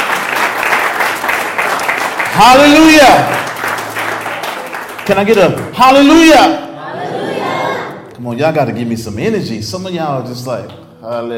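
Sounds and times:
audience clapping hands: 0.0 - 6.4
speech: 2.4 - 3.5, 5.1 - 6.6, 8.2 - 11.3.

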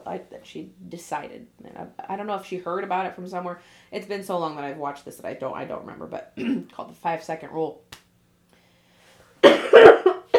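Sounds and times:
speech: 0.1 - 7.9
harsh choking coughs after swallowing wrong: 6.4 - 6.7, 9.4 - 10.3.

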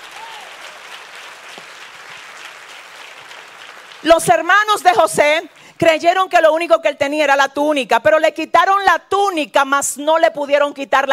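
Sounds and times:
audience applauding: 0.0 - 5.8
speech: 4.0 - 11.1.

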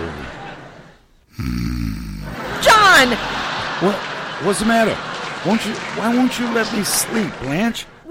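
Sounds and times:
laughter: 0.0 - 1.0, 2.1 - 8.0
man snoring: 1.3 - 2.4
speech: 1.4 - 2.4, 3.0 - 8.0.

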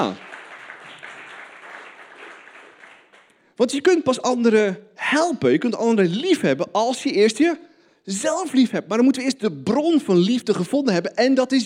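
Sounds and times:
speech: 0.0 - 0.2, 3.6 - 11.6
audience applause: 0.0 - 3.3.

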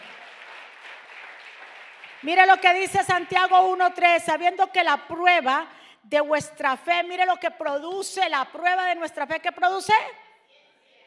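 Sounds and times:
crowd clapping: 0.0 - 3.4
speech: 2.2 - 10.2.

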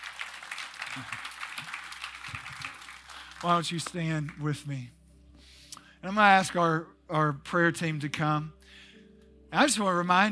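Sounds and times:
audience clapping: 0.0 - 4.7
speech: 1.0 - 1.2, 3.4 - 5.0, 6.0 - 8.8, 9.5 - 10.3.

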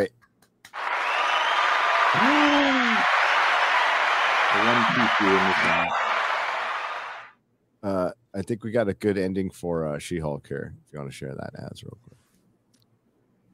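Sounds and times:
hand clapping: 0.4 - 7.3
speech: 2.1 - 2.4, 4.6 - 6.0, 7.8 - 12.2.

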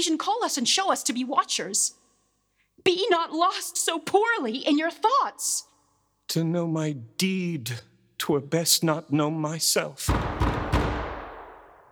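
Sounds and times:
speech: 0.0 - 2.1, 2.8 - 5.7, 6.3 - 10.4
knocking on a door: 10.1 - 11.8.

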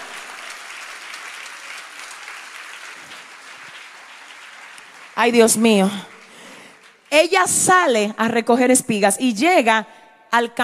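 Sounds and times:
applause: 0.0 - 8.1
speech: 5.2 - 6.1, 7.2 - 10.6.

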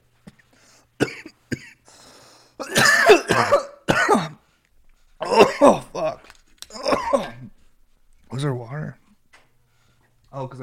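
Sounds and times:
person coughing after a bong hit: 1.0 - 2.0, 2.6 - 4.4, 5.2 - 7.6.

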